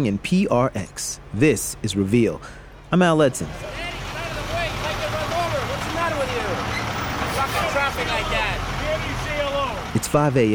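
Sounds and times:
speech: 0.0s - 3.9s, 10.1s - 10.5s
trucks carrying fresh fruits and vegetables at the San Francisco Wholesale Produce Market: 0.0s - 10.5s
forklifts carrying fresh fruits and vegetables at the San Francisco Wholesale Produce Market: 4.6s - 8.8s.

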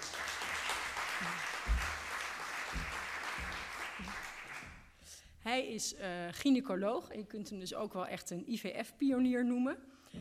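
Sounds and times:
audience applause: 0.0s - 4.8s
speech: 5.5s - 10.2s.

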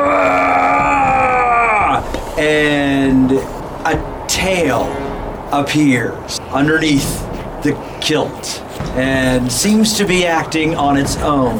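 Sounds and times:
person imitating an enraged orc scream: 0.0s - 2.0s
speech: 2.4s - 11.5s.

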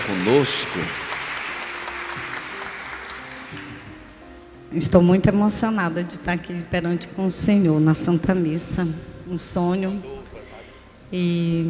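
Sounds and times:
crowd clapping: 0.0s - 4.1s
speech: 0.1s - 1.1s, 4.7s - 10.2s, 11.1s - 11.6s.

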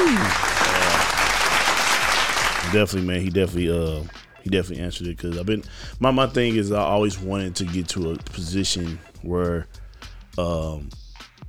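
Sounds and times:
hand clap sound effect button: 0.0s - 2.9s
speech: 2.7s - 11.0s.

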